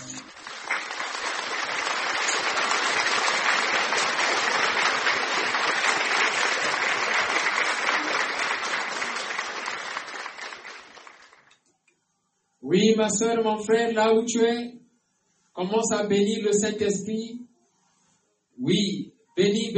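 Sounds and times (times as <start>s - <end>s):
large crowd clapping: 0.0s - 11.6s
speech: 12.8s - 14.8s, 15.6s - 17.4s, 18.7s - 19.7s.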